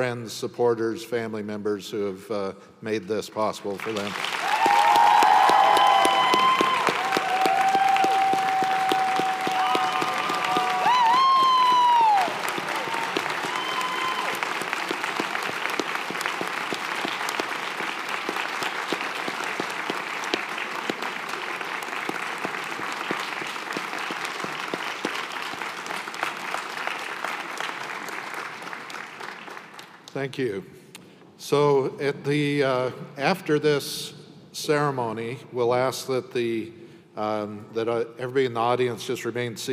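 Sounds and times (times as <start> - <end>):
speech: 0.0 - 4.5, 30.2 - 30.8, 31.4 - 39.7
audience applause: 3.8 - 30.1.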